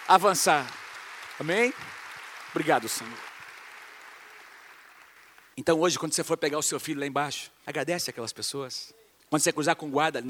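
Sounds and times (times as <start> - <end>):
audience applause: 0.0 - 5.6
speech: 0.1 - 0.8, 1.4 - 3.3, 5.6 - 10.2.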